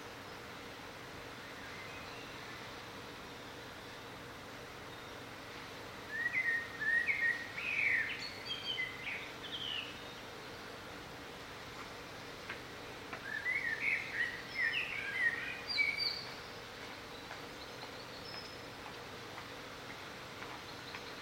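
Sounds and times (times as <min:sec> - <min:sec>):
bird song with bright chirps and warbled notes: 0:01.4 - 0:04.1, 0:04.8 - 0:05.3, 0:06.1 - 0:10.6, 0:13.1 - 0:21.2.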